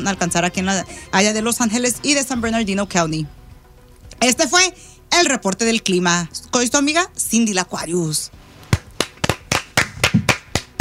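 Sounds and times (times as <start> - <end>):
speech: 0.0 - 3.4, 4.2 - 8.4
people clapping hands: 8.7 - 10.7.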